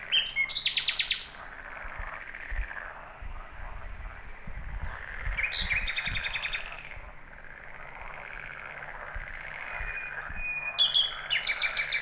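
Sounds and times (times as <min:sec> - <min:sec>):
common nightingale Luscinia megarhynchos singing: 0:00.0 - 0:01.7, 0:03.0 - 0:07.0, 0:09.3 - 0:11.9.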